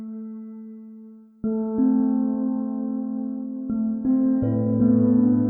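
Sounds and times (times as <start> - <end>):
dark melody: 1.6 - 5.4.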